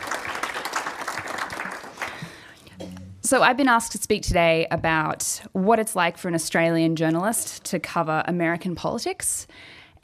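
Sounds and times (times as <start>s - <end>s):
audience applause: 0.0s - 2.4s
speech: 3.3s - 9.8s.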